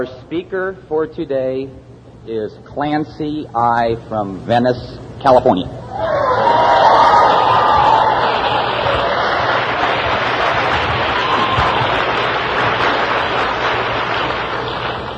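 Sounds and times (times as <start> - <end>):
speech: 0.0 - 6.6
audience applause: 6.0 - 15.1.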